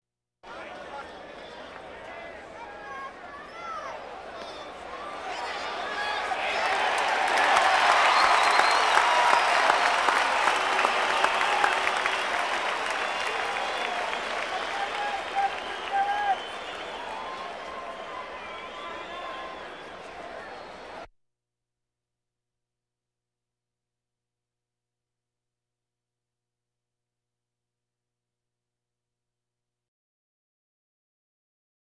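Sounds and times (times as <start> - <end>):
crowds: 0.4 - 21.1.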